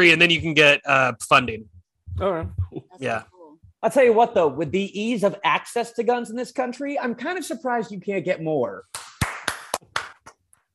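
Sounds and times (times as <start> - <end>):
speech: 0.0 - 9.1
single pair of hands clapping sparsely: 8.9 - 10.4.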